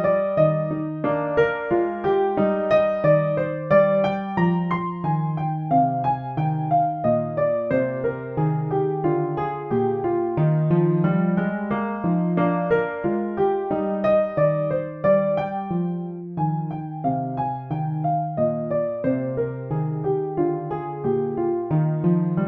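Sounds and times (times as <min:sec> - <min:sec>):
piano canon: 0:00.0 - 0:22.4.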